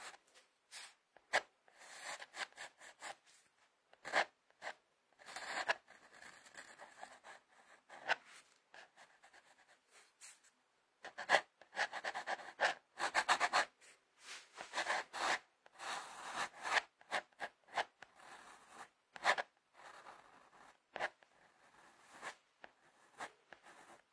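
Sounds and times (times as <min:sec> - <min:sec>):
pencil scratching across paper: 0:00.8 - 0:03.2, 0:04.0 - 0:13.8, 0:14.6 - 0:24.1.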